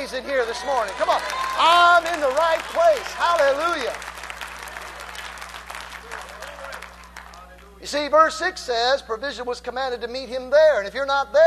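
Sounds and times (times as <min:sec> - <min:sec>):
audience clapping: 0:00.0 - 0:07.8
speech: 0:00.1 - 0:04.1, 0:07.8 - 0:11.4.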